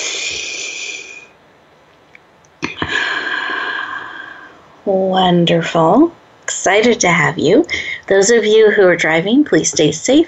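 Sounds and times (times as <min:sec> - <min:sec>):
people taking a deep breath together during a guided pause: 0:02.8 - 0:04.6
speech: 0:04.8 - 0:10.2.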